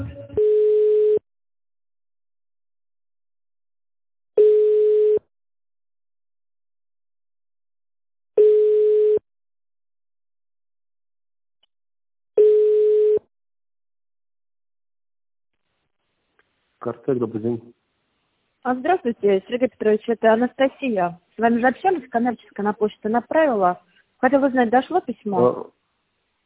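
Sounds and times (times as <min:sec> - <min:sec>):
telephone line tone while a call is being transferred: 0:00.4 - 0:01.2, 0:04.4 - 0:05.2, 0:08.4 - 0:09.2, 0:12.4 - 0:13.2
speech: 0:16.8 - 0:17.8, 0:18.7 - 0:25.8.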